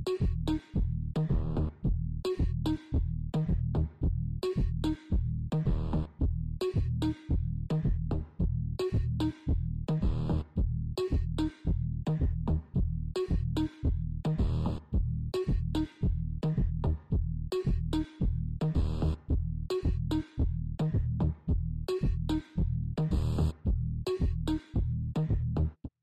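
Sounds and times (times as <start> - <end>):
house synth music: 0.1 - 25.7.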